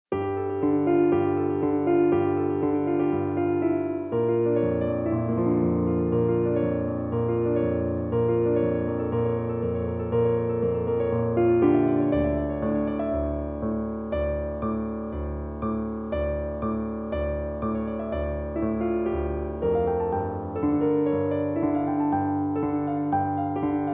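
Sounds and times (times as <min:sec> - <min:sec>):
piano: 0:00.1 - 0:23.9.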